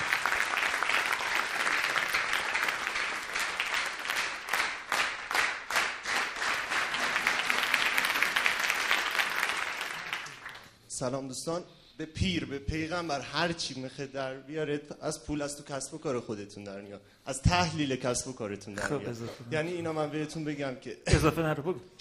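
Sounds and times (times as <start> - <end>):
group applauding: 0.0 - 10.8
speech: 11.0 - 21.9.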